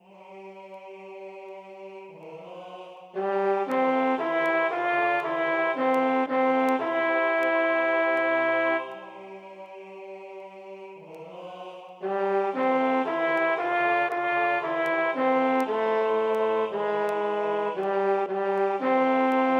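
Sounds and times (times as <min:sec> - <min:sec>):
tenor singing: 0:02.2 - 0:09.4, 0:11.1 - 0:19.5.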